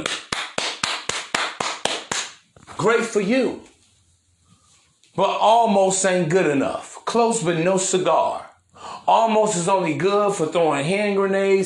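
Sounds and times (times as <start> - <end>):
hand clapping: 0.0 - 2.4
speech: 2.8 - 3.7, 5.2 - 8.5, 9.1 - 11.6.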